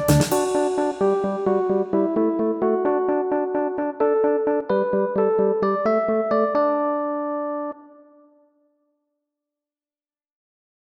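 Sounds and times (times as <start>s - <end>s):
title background music: 0.0s - 6.7s.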